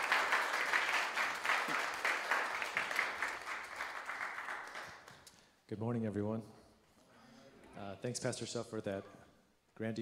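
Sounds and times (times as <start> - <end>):
audience applause welcoming a guest speaker to a church service: 0.0 - 5.3
speech: 5.7 - 6.6, 7.8 - 9.2, 9.8 - 10.0.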